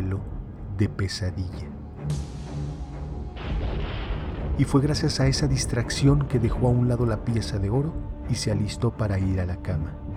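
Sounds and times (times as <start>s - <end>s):
speech: 0.2s - 2.3s, 4.6s - 10.0s
thunder in an electric storm: 3.4s - 6.5s.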